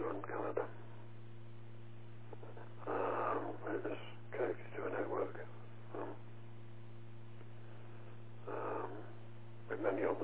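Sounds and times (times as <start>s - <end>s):
low electrical hum: 0.0s - 10.2s
snoring: 8.5s - 9.1s.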